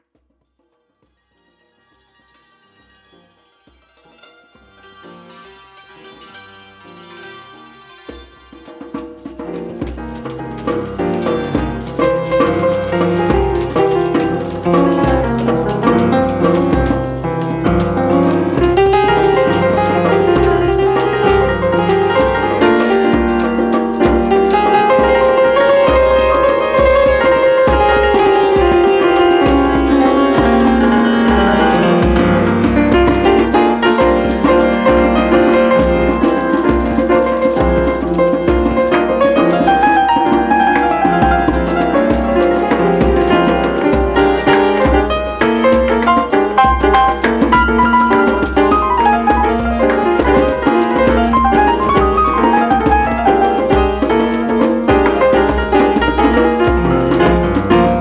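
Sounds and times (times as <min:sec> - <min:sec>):
santur: 0:01.2 - 0:09.6
piano: 0:01.2 - 0:57.9
drum: 0:08.8 - 0:57.9.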